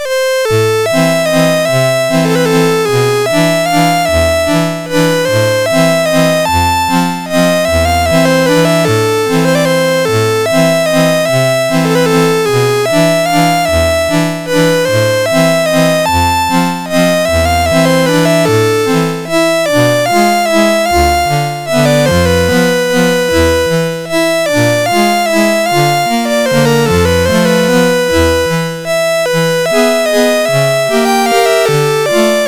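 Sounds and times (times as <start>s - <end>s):
waltz on MOS 6581R2 SID chip: 0.0s - 32.4s.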